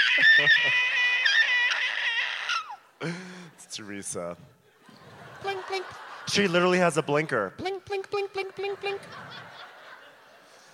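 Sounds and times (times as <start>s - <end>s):
laughter: 0.0s - 1.9s, 4.7s - 7.5s, 8.2s - 10.7s
man imitating a siren with his voice: 0.0s - 2.8s, 7.6s - 9.1s
speech: 0.2s - 1.0s, 3.0s - 4.6s, 5.4s - 9.5s.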